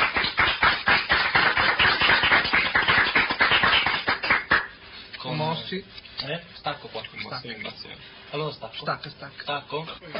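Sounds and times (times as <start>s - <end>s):
applause: 0.0s - 4.8s
speech: 5.7s - 10.1s.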